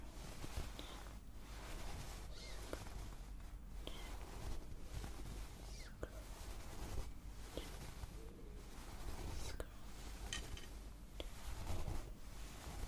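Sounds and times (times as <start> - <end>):
brief brighter scrapes and soft clicks: 0.0 - 12.8
fingers rustling through hair in a scalp massage: 0.0 - 12.8.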